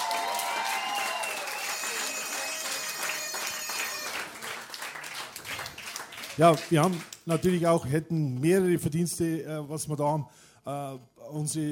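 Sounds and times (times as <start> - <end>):
cheering and whistles: 0.0 - 4.4
audience applause: 0.0 - 7.4
speech: 6.4 - 11.7.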